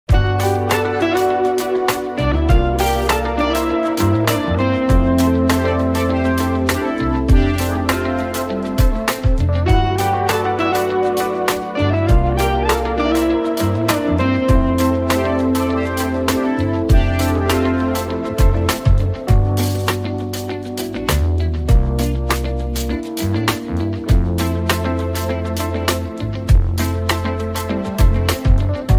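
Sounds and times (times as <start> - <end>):
instrumental music: 0.1 - 28.9.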